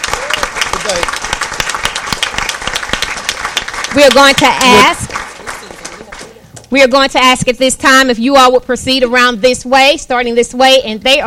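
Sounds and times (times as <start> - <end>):
audience applause: 0.0 - 6.4
speech: 4.0 - 5.2, 6.7 - 11.2.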